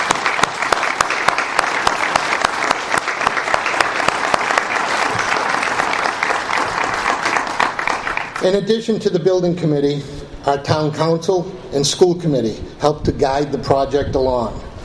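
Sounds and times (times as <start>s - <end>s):
audience applause: 0.0s - 8.5s
speech: 8.4s - 14.6s.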